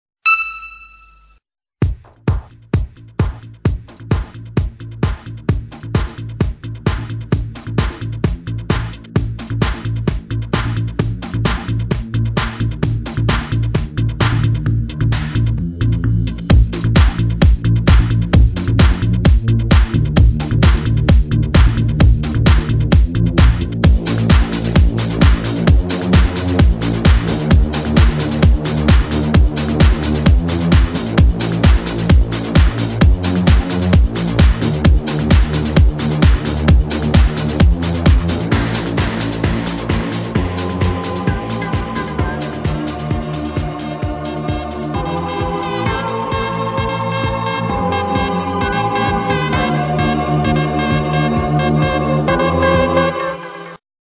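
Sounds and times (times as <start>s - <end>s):
techno music: 3.2s - 53.5s.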